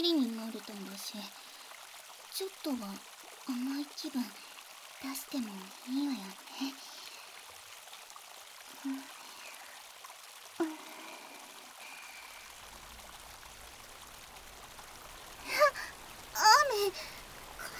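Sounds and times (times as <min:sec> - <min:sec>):
speech: 0:00.0 - 0:01.4, 0:02.4 - 0:06.9, 0:08.8 - 0:09.2, 0:10.6 - 0:10.9
rain: 0:00.0 - 0:17.7
high vocal exclamations: 0:15.5 - 0:17.0.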